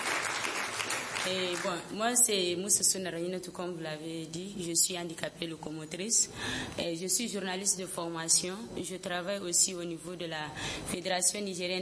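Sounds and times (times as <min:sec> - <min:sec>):
audience applause: 0:00.0 - 0:01.3
speech: 0:01.2 - 0:11.8.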